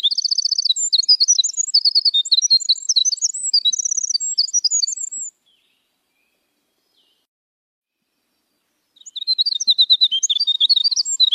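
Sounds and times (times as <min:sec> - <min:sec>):
Eurasian skylark warbled song with repeated trills: 0:00.0 - 0:07.3, 0:08.0 - 0:11.3.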